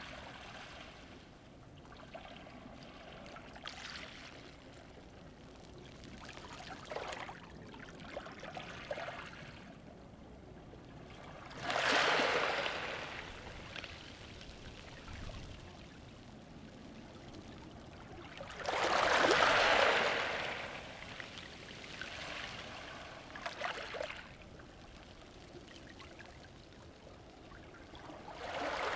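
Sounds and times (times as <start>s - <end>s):
waves with pebbles at Allihies: 2.4s - 9.6s, 11.1s - 16.6s, 17.7s - 25.5s, 28.0s - 28.9s.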